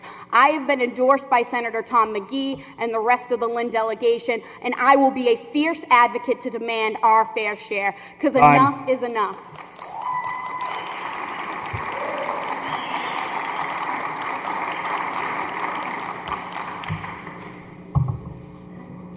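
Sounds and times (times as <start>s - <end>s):
speech: 0.4s - 9.6s
audience applause: 9.6s - 17.6s.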